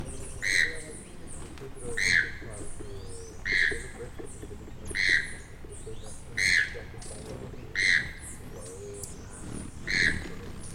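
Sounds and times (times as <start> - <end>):
Choco toucan croaking calls: 0.0 - 10.7.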